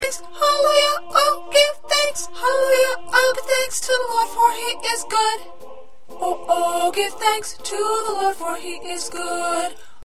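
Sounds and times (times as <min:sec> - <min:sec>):
first soprano singing: 0:00.0 - 0:10.0.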